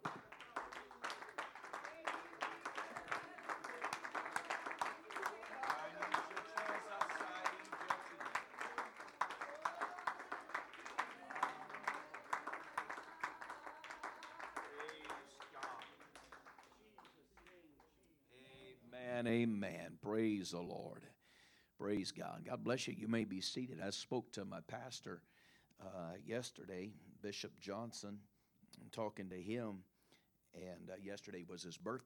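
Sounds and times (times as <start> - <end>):
audience clapping hands: 0.0 - 18.0
speech: 19.2 - 21.2, 21.8 - 29.9, 30.6 - 32.0.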